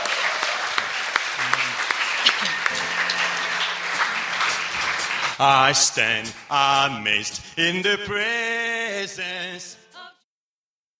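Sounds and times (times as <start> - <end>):
congregation applause at a church service welcoming worship leaders: 0.0 - 6.6
speech: 5.4 - 9.8.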